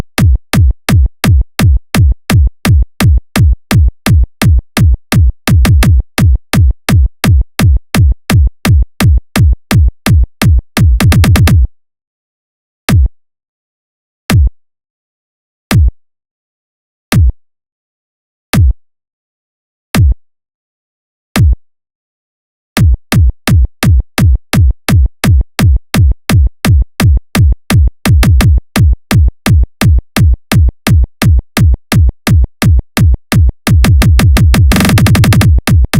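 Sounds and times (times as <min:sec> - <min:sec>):
kick drum: 0:00.0 - 0:11.7, 0:12.9 - 0:13.2, 0:14.3 - 0:14.6, 0:15.7 - 0:16.0, 0:17.1 - 0:17.4, 0:18.6 - 0:18.8, 0:20.0 - 0:20.2, 0:21.4 - 0:21.6, 0:22.8 - 0:35.9.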